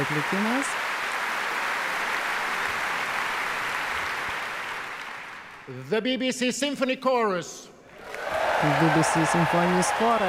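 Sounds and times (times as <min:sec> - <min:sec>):
speech: 0:00.0 - 0:00.8, 0:05.7 - 0:07.7, 0:08.6 - 0:10.2
audience applause for a symphony orchestra after a performance: 0:00.0 - 0:05.7, 0:08.0 - 0:10.2.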